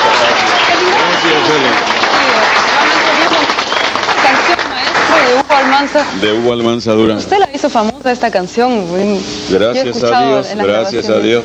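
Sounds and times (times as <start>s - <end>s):
audience applause: 0.0s - 6.2s
speech: 5.8s - 11.4s.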